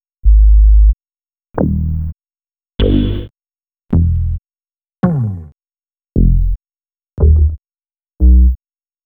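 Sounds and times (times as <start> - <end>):
bass: 0.2 - 1.0, 1.6 - 2.2, 2.8 - 3.3, 3.9 - 4.4, 5.0 - 5.6, 6.2 - 6.6, 7.2 - 7.6, 8.2 - 8.6.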